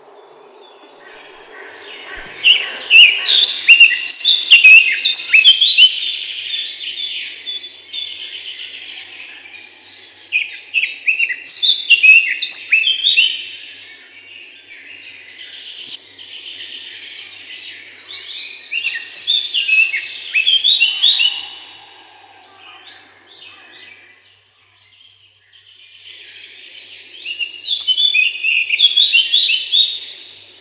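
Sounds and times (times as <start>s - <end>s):
Eurasian blackcap song: 0.3s - 30.5s.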